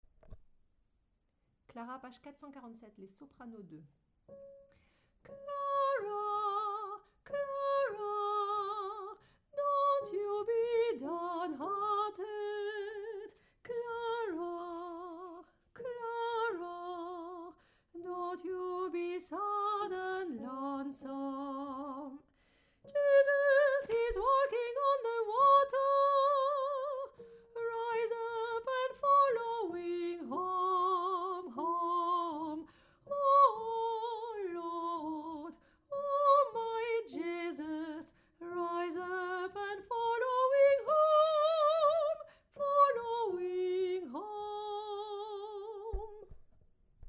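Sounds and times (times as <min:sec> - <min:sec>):
soprano singing: 0:04.3 - 0:46.4.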